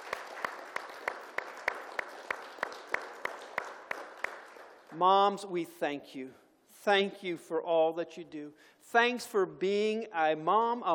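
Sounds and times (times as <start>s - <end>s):
audience applause: 0.0s - 5.0s
speech: 5.0s - 10.9s.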